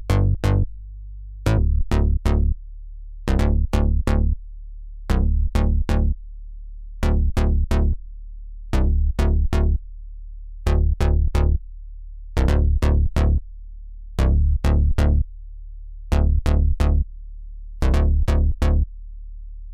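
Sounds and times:
Korg Arp 2600 VST bass: 0:00.0 - 0:04.4, 0:05.1 - 0:06.2, 0:07.0 - 0:08.1, 0:08.7 - 0:10.0, 0:10.6 - 0:11.7, 0:12.3 - 0:15.3, 0:16.1 - 0:17.2, 0:17.8 - 0:19.0.

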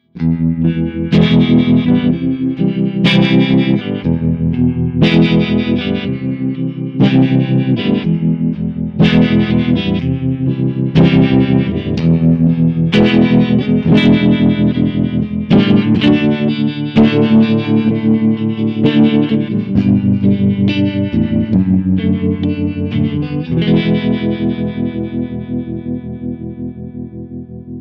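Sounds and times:
Crazy Tube Circuits White Whale effects pedal harmonic tremolo with hard reverb: 0:00.0 - 0:27.8.

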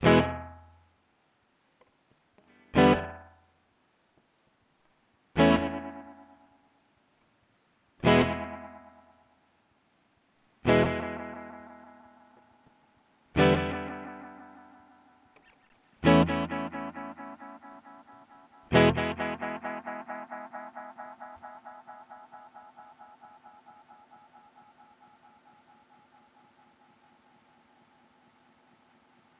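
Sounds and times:
electric guitar through Binson Echorec: 0:00.0 - 0:00.7, 0:02.4 - 0:03.4, 0:05.4 - 0:06.6, 0:08.0 - 0:09.2, 0:10.6 - 0:27.4.

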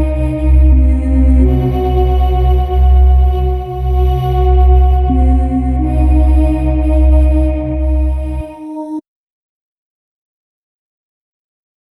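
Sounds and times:
Waldorf Quantum synthesizer: 0:00.0 - 0:09.0.

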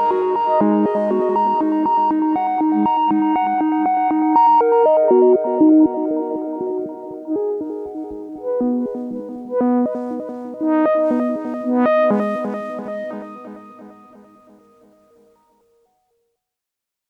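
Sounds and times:
Cascadia duo oscillator synthesizer: 0:00.0 - 0:14.4.

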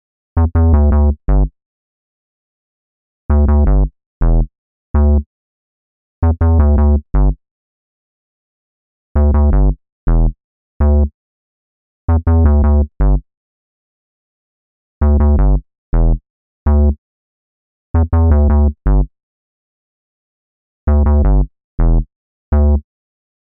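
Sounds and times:
bass playing a bridge in A: 0:00.4 - 0:01.5, 0:03.3 - 0:05.2, 0:06.2 - 0:07.4, 0:09.2 - 0:11.1, 0:12.1 - 0:13.2, 0:15.0 - 0:17.0, 0:18.0 - 0:19.1, 0:20.9 - 0:22.8.

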